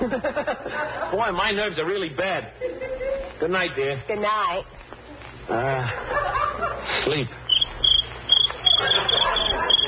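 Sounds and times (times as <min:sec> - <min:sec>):
laughter: 0:00.0 - 0:01.3, 0:02.6 - 0:03.4, 0:05.5 - 0:07.3, 0:08.5 - 0:09.8
speech: 0:00.1 - 0:00.5, 0:01.1 - 0:02.7, 0:03.4 - 0:04.8, 0:05.5 - 0:07.4
cricket chirping: 0:07.5 - 0:09.8.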